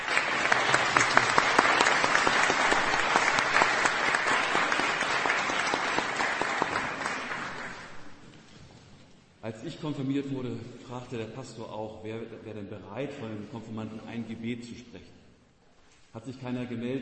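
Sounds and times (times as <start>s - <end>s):
audience applause: 0.0s - 8.2s
speech: 9.8s - 15.2s, 16.2s - 17.0s.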